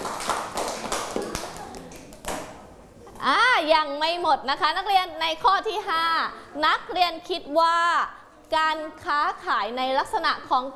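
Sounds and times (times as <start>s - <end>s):
students clapping for themselves: 0.0s - 2.7s
speech: 3.2s - 10.7s.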